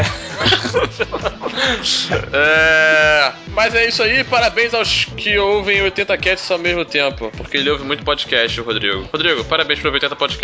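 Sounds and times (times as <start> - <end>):
person chuckling: 0.0 - 3.2
speech: 1.0 - 10.4
person doing a nasal goat bleat impression: 1.8 - 3.4.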